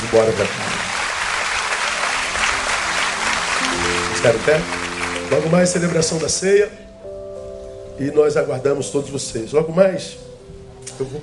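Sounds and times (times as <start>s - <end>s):
audience applause: 0.0s - 6.4s
speech: 0.1s - 0.7s, 4.2s - 6.8s, 8.0s - 10.3s, 11.0s - 11.2s.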